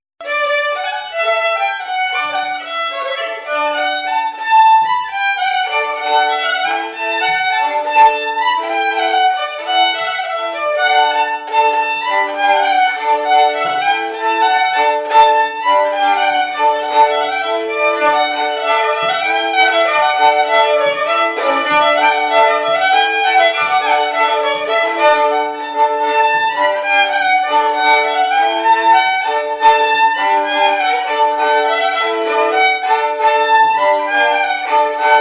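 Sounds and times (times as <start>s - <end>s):
oberek oczepinowy folk dance music: 0.2s - 35.1s.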